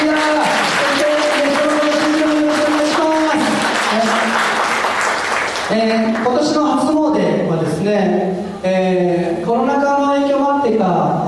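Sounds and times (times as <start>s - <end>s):
crowd applauding: 0.0s - 6.4s
speech: 5.9s - 11.2s.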